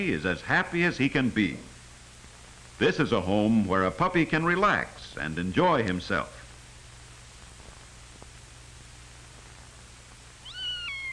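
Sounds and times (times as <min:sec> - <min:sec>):
speech: 0:00.0 - 0:01.7, 0:02.8 - 0:06.4
faint low hum: 0:00.0 - 0:11.1
cat meowing: 0:10.4 - 0:11.1.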